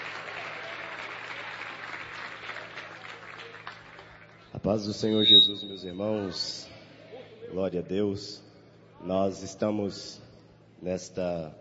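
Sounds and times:
audience clapping hands: 0.0s - 4.5s
speech: 4.6s - 6.8s, 7.5s - 8.4s, 9.0s - 10.2s, 10.8s - 11.5s.

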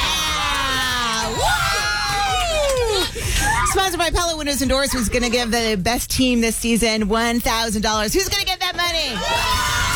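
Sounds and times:
dense crowd roar: 0.0s - 3.1s, 9.2s - 9.9s
high-pitched whoops: 0.0s - 3.8s, 9.2s - 9.9s
cheerleaders cheering and shouting: 0.0s - 4.0s, 9.1s - 9.9s
speech: 3.8s - 9.6s.

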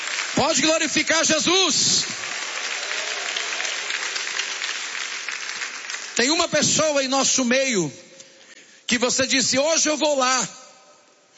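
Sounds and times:
crowd applause: 0.0s - 6.2s
speech: 0.4s - 2.4s, 6.2s - 8.0s, 8.9s - 10.5s.

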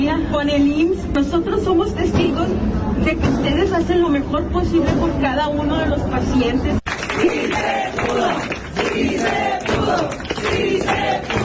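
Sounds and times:
speech: 0.1s - 11.4s
crowd applauding: 6.9s - 11.4s.

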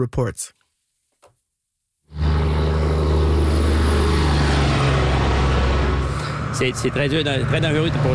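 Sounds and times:
cars speeding past on a highway: 2.1s - 8.1s.

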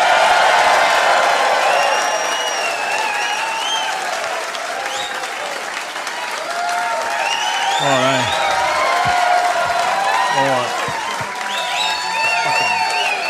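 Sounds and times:
comedy audience applauding: 0.0s - 13.2s
audience whistles: 1.6s - 4.2s, 4.8s - 5.3s, 7.1s - 8.8s, 11.1s - 13.2s
laughter: 7.8s - 13.2s.

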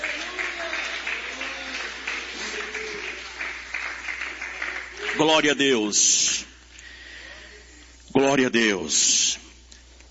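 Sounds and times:
audience clapping hands: 0.0s - 5.8s
speech: 5.2s - 6.4s, 8.2s - 9.4s.

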